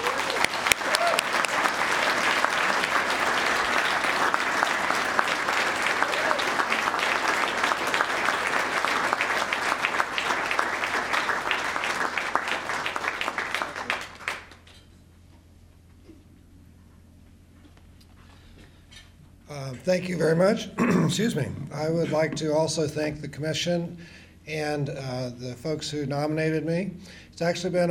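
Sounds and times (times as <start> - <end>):
audience applause: 0.0 - 14.6
speech: 19.9 - 27.8.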